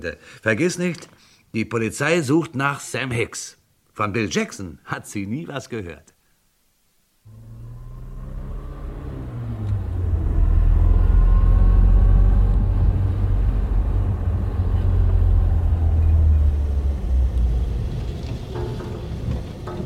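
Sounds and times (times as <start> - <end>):
speech: 0.0 - 6.2
car engine idling: 7.3 - 19.8.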